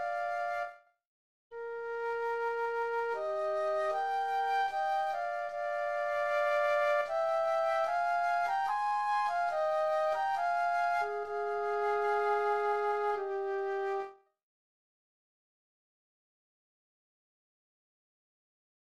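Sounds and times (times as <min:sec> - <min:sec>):
classical adagio flute duet: 0:00.0 - 0:00.8, 0:01.6 - 0:14.2.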